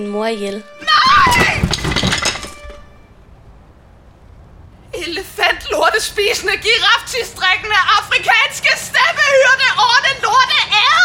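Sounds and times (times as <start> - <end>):
speech: 0.0 - 1.8, 5.6 - 11.0
third-floor window glass breaking from a thrown cello: 1.2 - 2.9.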